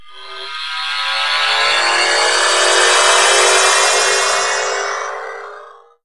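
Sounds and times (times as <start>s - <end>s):
warp effect: 0.0s - 6.0s.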